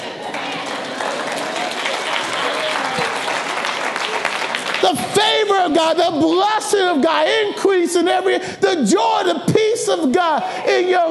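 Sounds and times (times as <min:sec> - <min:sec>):
small group clapping: 0:00.0 - 0:05.7
speech: 0:04.9 - 0:11.0.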